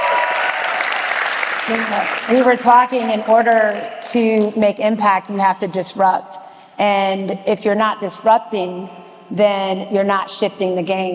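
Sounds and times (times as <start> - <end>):
crowd applause: 0.0 - 3.8
speech: 1.7 - 11.1.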